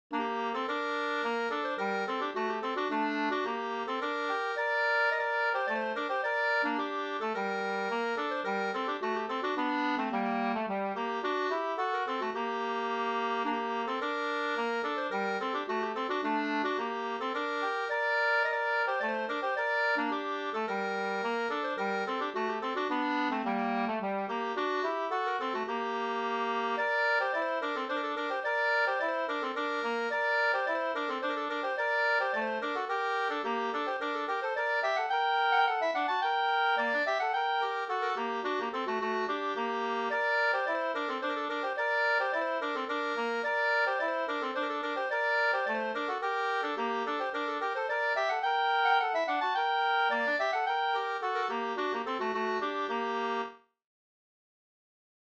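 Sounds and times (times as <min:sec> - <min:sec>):
two-part polska dance tune: 0:00.1 - 0:53.6.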